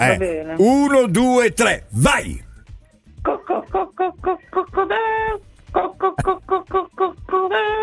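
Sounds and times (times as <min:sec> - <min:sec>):
speech: 0:00.0 - 0:02.5, 0:03.2 - 0:07.8
person imitating a hen clucking: 0:03.3 - 0:07.8.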